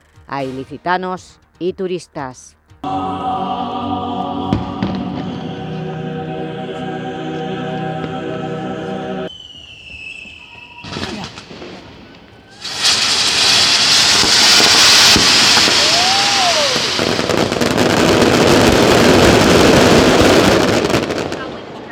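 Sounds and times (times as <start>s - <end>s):
speech: 0.3s - 4.2s
Palmera de la Virgen palm-shaped aerial fireworks burst in Elche, Spain: 2.8s - 6.0s, 7.8s - 21.8s
steady tonal sound: 2.8s - 9.3s
rising fireworks whistle: 2.8s - 11.1s, 15.5s - 17.0s.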